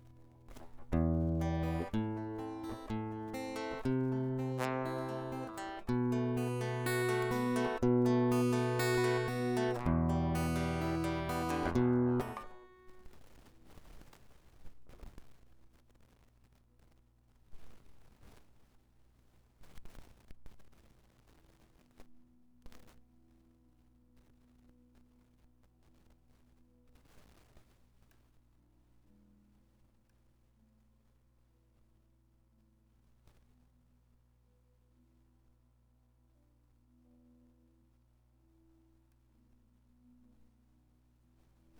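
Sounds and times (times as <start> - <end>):
guitar: 0.0 - 14.0.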